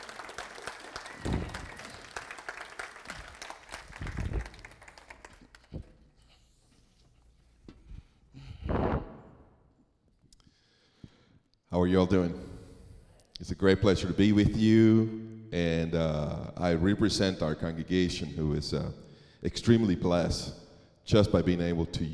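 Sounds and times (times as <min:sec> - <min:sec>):
congregation applauding as a pastor comes up to speak: 0:00.0 - 0:06.0
scattered knocks and thumps: 0:01.2 - 0:01.6
speech: 0:11.8 - 0:12.5, 0:13.4 - 0:22.1.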